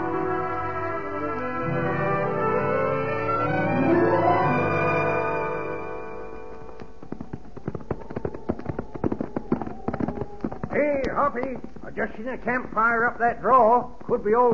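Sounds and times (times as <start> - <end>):
lingering musical tone: 0.0 - 6.8
horse hooves clip-clopping: 5.0 - 14.5
speech: 11.3 - 14.5.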